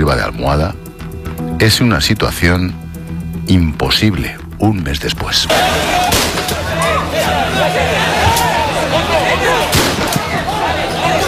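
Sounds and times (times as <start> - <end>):
speech: 0.1 - 0.8, 1.6 - 2.8, 3.5 - 6.1
police gunshots fired into the air: 5.5 - 6.6, 9.7 - 10.4
crowd murmur: 5.5 - 11.2
people shouting: 5.5 - 11.2.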